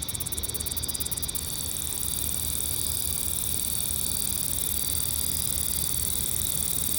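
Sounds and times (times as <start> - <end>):
cicada calling right on a microphone: 0.0 - 6.9.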